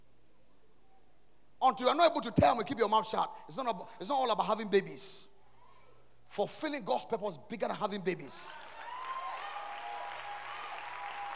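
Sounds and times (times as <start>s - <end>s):
speech: 1.6s - 5.3s, 6.3s - 8.7s
audience clapping: 8.5s - 11.3s.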